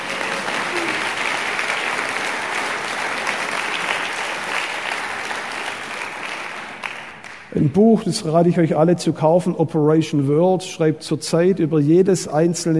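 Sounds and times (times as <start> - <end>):
audience applause: 0.0 - 7.5
speech: 7.6 - 12.7.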